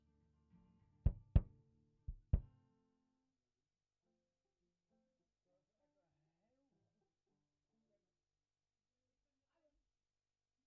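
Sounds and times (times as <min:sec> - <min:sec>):
kick drum: 0:01.1 - 0:01.5, 0:02.1 - 0:02.5.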